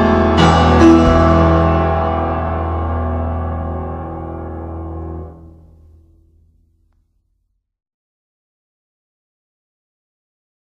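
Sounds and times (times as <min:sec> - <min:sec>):
prelude in E major: 0:00.0 - 0:06.0.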